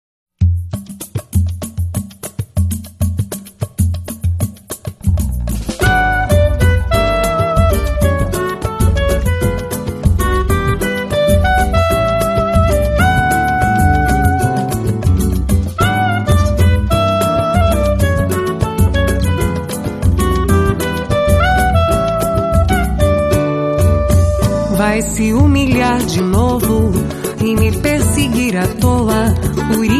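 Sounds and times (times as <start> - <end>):
samba music: 0.4 - 29.9.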